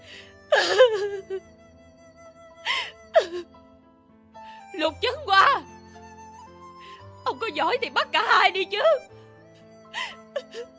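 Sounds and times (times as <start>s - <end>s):
woman crying with a choked, breaking voice: 0.0s - 1.5s, 2.7s - 3.6s, 7.4s - 9.0s, 10.0s - 10.7s
speech: 1.2s - 1.6s, 4.8s - 5.7s, 7.6s - 9.2s.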